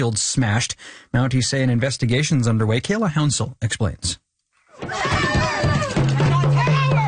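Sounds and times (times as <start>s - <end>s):
speech: 0.0s - 4.2s
protesters shouting around a car: 4.8s - 7.0s.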